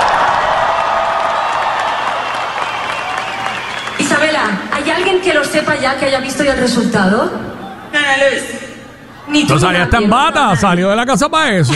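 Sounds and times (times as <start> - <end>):
audience applause: 0.0 - 5.3
speech: 5.5 - 8.6, 9.3 - 11.7.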